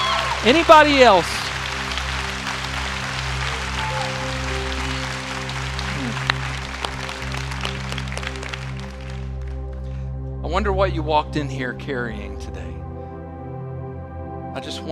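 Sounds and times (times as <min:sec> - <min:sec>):
audience applause: 0:00.0 - 0:09.8
speech: 0:00.4 - 0:01.4, 0:10.5 - 0:12.6, 0:14.6 - 0:14.8.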